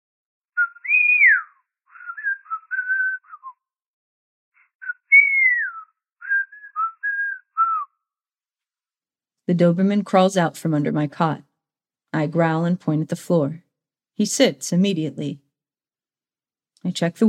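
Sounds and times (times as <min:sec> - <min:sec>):
people whistling a tune behind a door: 0:00.6 - 0:03.6, 0:04.8 - 0:08.0
speech: 0:09.5 - 0:11.5, 0:12.1 - 0:13.6, 0:14.2 - 0:15.4, 0:16.8 - 0:17.2.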